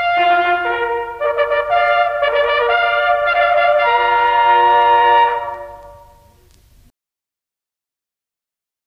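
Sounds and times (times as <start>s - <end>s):
band playing: 0.0s - 6.5s.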